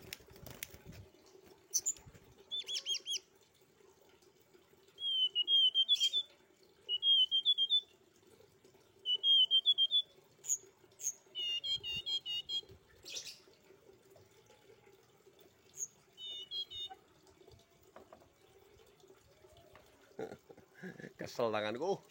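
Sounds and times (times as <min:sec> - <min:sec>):
streaked spiderhunter song of high scratchy chirps and rasping bursts: 0:01.7 - 0:03.2, 0:05.0 - 0:06.3, 0:06.9 - 0:07.9, 0:09.0 - 0:13.4, 0:15.7 - 0:17.0.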